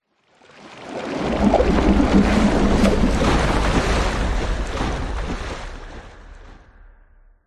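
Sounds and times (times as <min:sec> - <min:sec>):
water whoosh: 0:00.4 - 0:06.8.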